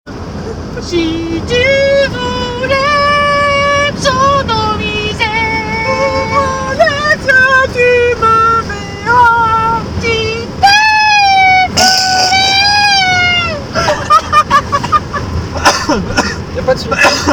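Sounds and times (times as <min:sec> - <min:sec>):
vocals: 0:00.4 - 0:15.0, 0:15.6 - 0:17.3.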